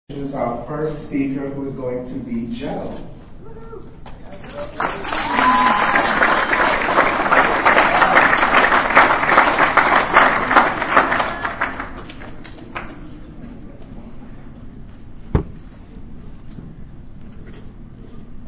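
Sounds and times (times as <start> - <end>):
speech: 0.1 - 6.8
audience clapping: 4.1 - 13.2
sharp knock: 15.3 - 15.6.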